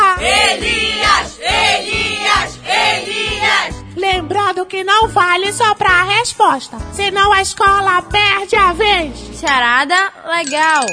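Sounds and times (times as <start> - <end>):
school supporters cheering and chanting: 0.1 - 3.8
speech: 5.3 - 10.9.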